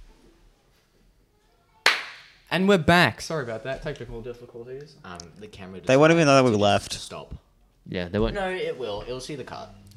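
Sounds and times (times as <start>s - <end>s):
single hand clap for editing sync: 1.8s - 2.4s
speech: 2.5s - 9.8s.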